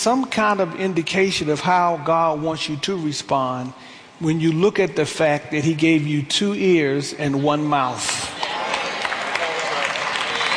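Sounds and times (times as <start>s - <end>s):
speech: 0.0s - 8.4s
audience clapping during a sermon: 7.9s - 10.5s.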